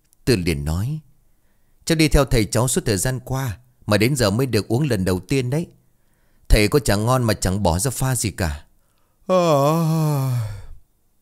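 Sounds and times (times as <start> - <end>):
speech: 0.3 - 1.1, 1.8 - 5.8, 6.5 - 8.7, 9.3 - 10.6
long yawn: 9.3 - 10.8.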